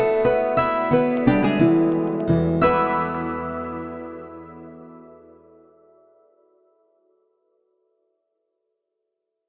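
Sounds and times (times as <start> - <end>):
vinyl blues logo: 0.2 - 5.7.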